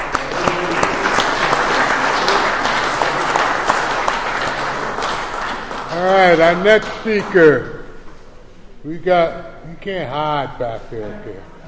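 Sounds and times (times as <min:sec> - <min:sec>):
crowd applauding: 0:00.0 - 0:07.6
speech: 0:06.0 - 0:07.8, 0:08.8 - 0:11.6.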